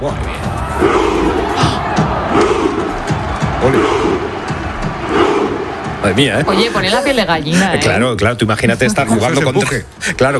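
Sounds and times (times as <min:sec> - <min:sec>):
speech: 0:00.0 - 0:01.0, 0:06.1 - 0:10.3
crowd roar: 0:00.0 - 0:07.4
football fans chanting in rhythmic unison imitating Viking rowing: 0:00.3 - 0:07.9.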